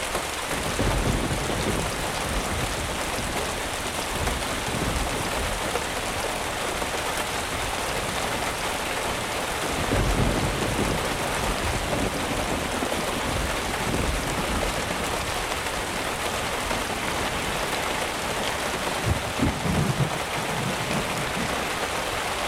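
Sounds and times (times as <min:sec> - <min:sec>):
thunderstorm: 0:00.2 - 0:22.3.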